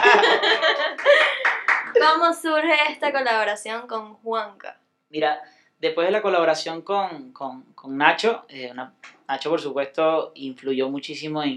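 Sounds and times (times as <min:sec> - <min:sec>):
audience applause: 0:00.0 - 0:02.1
laughter: 0:00.0 - 0:02.2
speech: 0:02.0 - 0:11.5.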